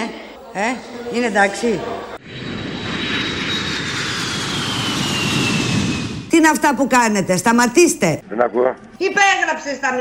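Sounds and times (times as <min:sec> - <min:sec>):
speech: 0:00.0 - 0:02.4, 0:06.4 - 0:09.9
jet engines roaring during airplane landing: 0:02.0 - 0:06.3.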